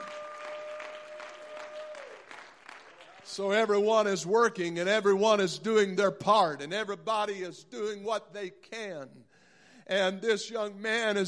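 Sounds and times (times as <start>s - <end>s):
audience clapping hands: 0.0s - 3.8s
speech: 3.3s - 9.3s, 9.9s - 11.2s.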